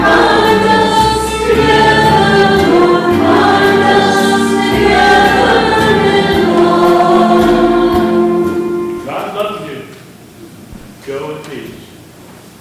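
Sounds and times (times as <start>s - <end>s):
chorus at a church service: 0.0s - 9.3s.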